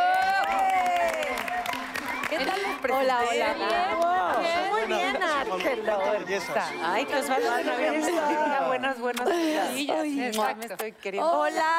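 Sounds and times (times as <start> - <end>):
audience cheering: 0.0 - 3.8
audience applause: 0.0 - 5.4
speech: 2.8 - 11.7.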